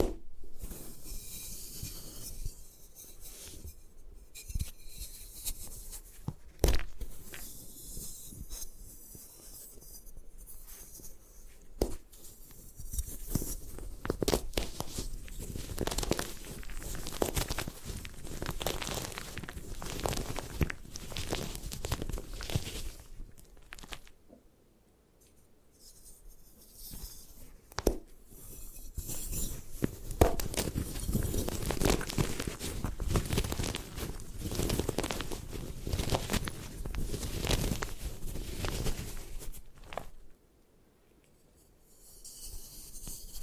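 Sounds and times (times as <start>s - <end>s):
gym chalk being crushed and broken apart: 4.6s - 24.2s, 25.8s - 40.3s.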